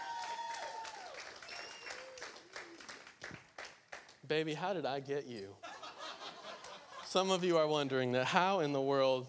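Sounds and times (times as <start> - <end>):
audience applause: 0.0 - 4.1
speech: 4.3 - 5.7, 7.1 - 9.2
laughter: 5.6 - 7.3.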